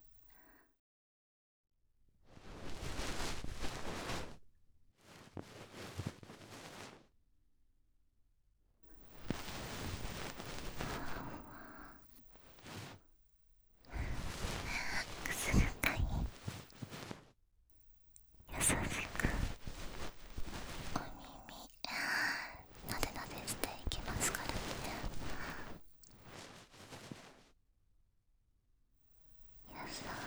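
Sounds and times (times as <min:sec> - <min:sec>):
bonten fluff brushing the right ear: 0:02.4 - 0:04.4, 0:05.0 - 0:07.0, 0:09.2 - 0:11.9, 0:12.5 - 0:13.0, 0:13.9 - 0:17.2, 0:18.5 - 0:22.1, 0:22.8 - 0:27.4, 0:29.7 - 0:30.2
person whispering in the right ear: 0:10.7 - 0:12.0, 0:13.9 - 0:16.7, 0:18.5 - 0:19.7, 0:20.4 - 0:25.8, 0:29.7 - 0:30.2.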